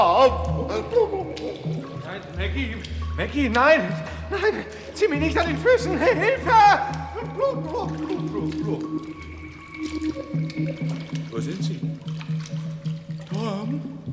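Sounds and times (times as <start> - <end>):
speech: 0.0 - 1.0, 2.6 - 12.8
ice-cold water sloshing and trickling: 0.0 - 14.1
laughter: 0.2 - 2.0, 4.3 - 8.8.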